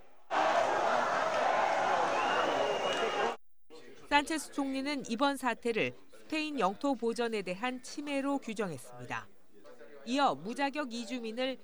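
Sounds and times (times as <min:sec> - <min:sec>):
angry residents protesting and jeering: 0:00.3 - 0:03.4
speech: 0:04.2 - 0:09.4, 0:10.0 - 0:11.6.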